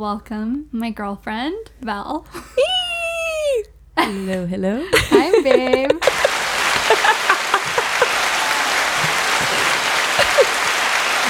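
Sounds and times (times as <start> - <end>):
speech: 0.0 - 2.7, 4.0 - 6.2
laughter: 2.3 - 11.2
applause: 5.6 - 11.2.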